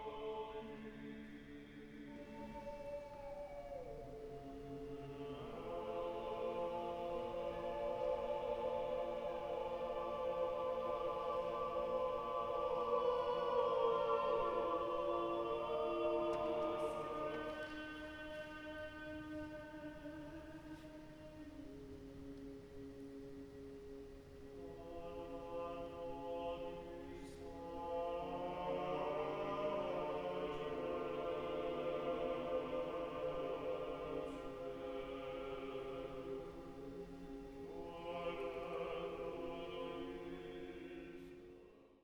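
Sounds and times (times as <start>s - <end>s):
choir singing a mass setting: 0.0s - 42.0s.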